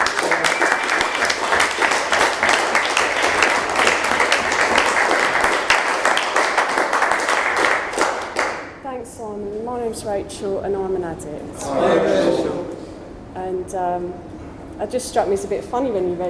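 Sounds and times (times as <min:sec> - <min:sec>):
audience applause welcoming a speaker: 0:00.0 - 0:08.8
speech: 0:10.2 - 0:12.6, 0:13.4 - 0:16.2.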